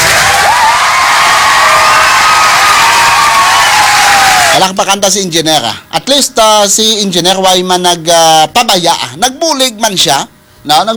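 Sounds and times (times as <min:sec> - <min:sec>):
crowd clapping for an engineer from a construction company: 0:00.0 - 0:04.6
crowd shouts and whoops: 0:00.0 - 0:04.6
speech: 0:04.6 - 0:10.9.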